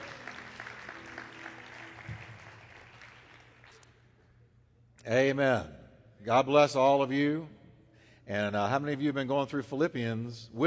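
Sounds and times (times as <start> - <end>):
church congregation clapping for a group as they leave: 0.0 - 4.1
speech: 5.0 - 7.6, 8.3 - 10.6.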